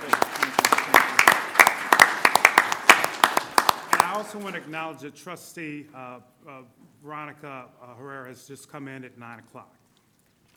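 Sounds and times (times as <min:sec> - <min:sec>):
scattered clapping from a small group at a board of trustees meeting: 0:00.0 - 0:04.5
speech: 0:04.2 - 0:09.8.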